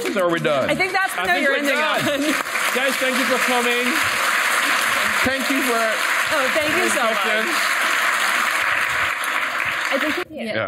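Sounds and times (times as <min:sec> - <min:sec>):
laughter: 0:00.0 - 0:04.0
evening audience applause for guests of a conversation event: 0:00.0 - 0:10.3
speech: 0:00.2 - 0:04.3, 0:05.2 - 0:07.8, 0:09.9 - 0:10.6.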